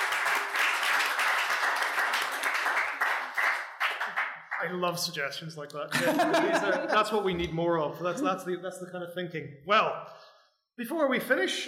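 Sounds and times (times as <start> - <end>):
audience applause: 0.0 - 4.8
speech: 4.6 - 10.2, 10.8 - 11.6
laughter: 5.9 - 8.6.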